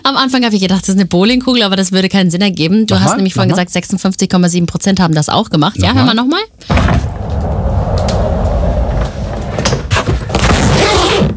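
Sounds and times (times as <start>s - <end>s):
speech: 0.1s - 7.4s
rolling suitcase wheels grinding: 6.7s - 11.3s.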